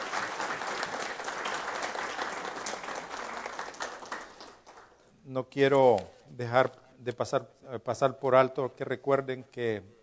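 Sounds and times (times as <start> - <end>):
audience applause: 0.0 - 4.9
speech: 5.3 - 10.0.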